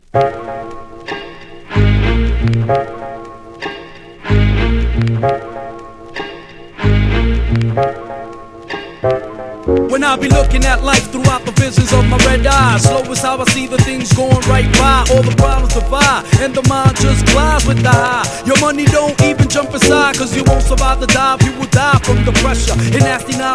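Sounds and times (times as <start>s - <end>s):
hardcore hip hop music: 0.1s - 23.5s.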